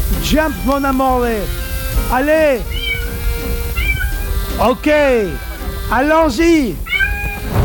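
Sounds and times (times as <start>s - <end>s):
speech: 0.2s - 2.7s, 4.6s - 6.9s
cat meowing: 2.7s - 4.4s, 6.8s - 7.5s.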